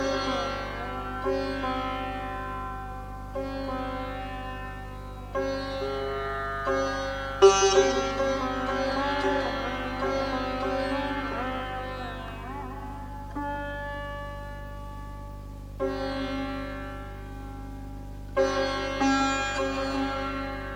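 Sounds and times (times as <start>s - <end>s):
sitar playing a raga: 0.0s - 20.7s.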